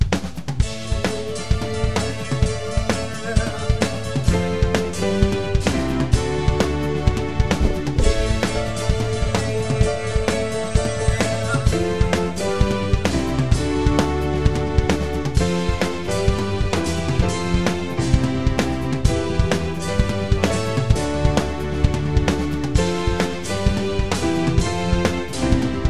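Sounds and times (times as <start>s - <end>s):
instrumental music: 0.2s - 25.8s.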